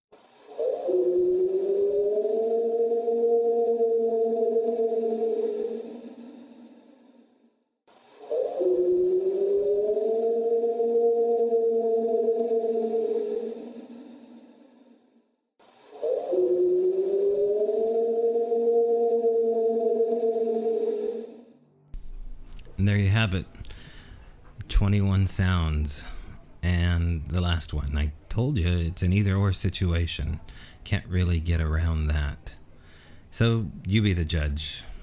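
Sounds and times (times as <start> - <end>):
purported Sasquatch yell recording: 0.6 - 6.7, 8.3 - 14.2, 16.0 - 21.6
speech: 23.2 - 23.6, 24.8 - 32.5, 33.4 - 34.9.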